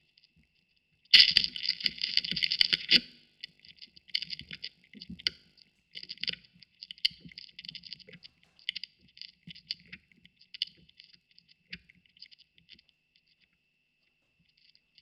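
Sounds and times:
vinyl record noise: 0:01.0 - 0:12.8.

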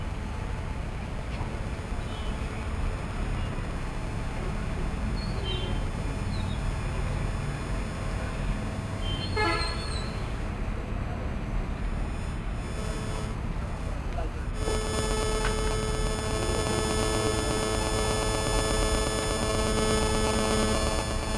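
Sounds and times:
rooftop ambience in Boudha, Kathmandu, Nepal: 0:00.0 - 0:21.3.

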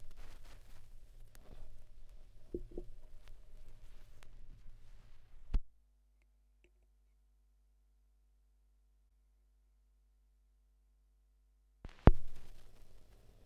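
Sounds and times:
vinyl record noise at 16 rpm: 0:00.0 - 0:05.7, 0:11.9 - 0:13.4.

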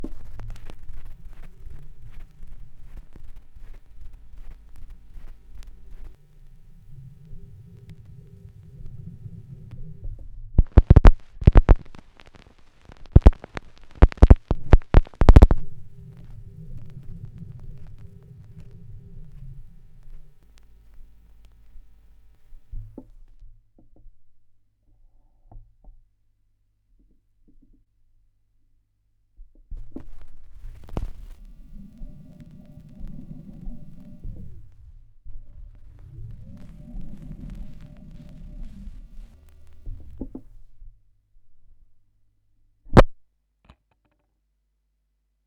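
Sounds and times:
vinyl record noise: 0:00.0 - 0:23.3, 0:29.7 - 0:40.7.

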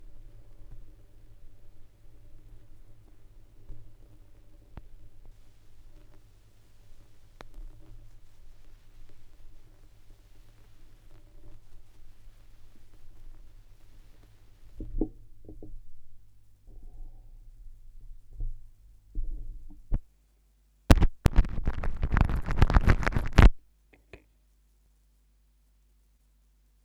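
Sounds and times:
vinyl record crackle: 0:03.0 - 0:14.8, 0:20.9 - 0:23.7.

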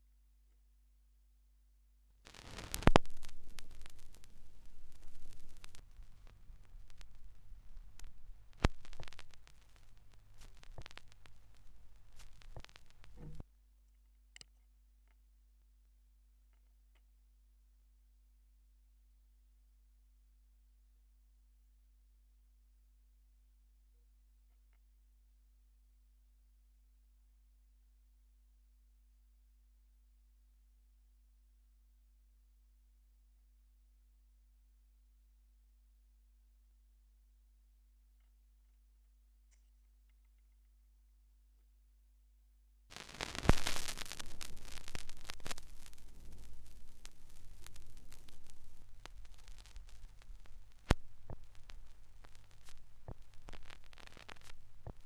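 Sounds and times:
vinyl record noise: 0:02.3 - 0:13.4, 0:42.9 - 0:55.0.

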